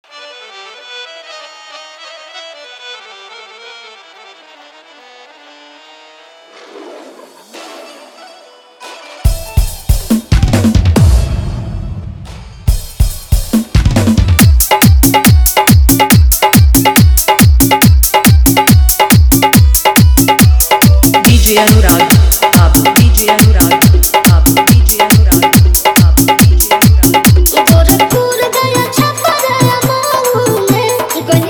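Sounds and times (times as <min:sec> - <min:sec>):
hard bass DJ mix of a Bhojpuri song: 0:09.3 - 0:11.1, 0:12.8 - 0:31.4.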